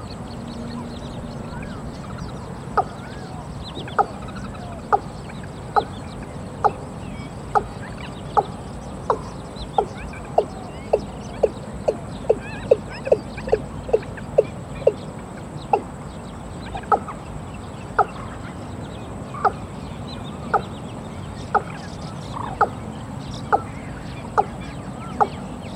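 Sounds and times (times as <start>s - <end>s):
other birds chirping: 0.0s - 25.7s
watercock calling: 1.5s - 17.2s, 19.3s - 19.8s, 21.4s - 22.9s, 23.5s - 25.7s.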